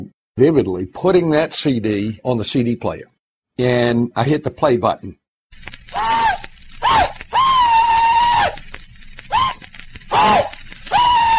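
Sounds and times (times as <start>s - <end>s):
speech: 0.4s - 6.0s
rebel yell by Confederate veteran: 6.0s - 8.6s, 9.3s - 11.3s.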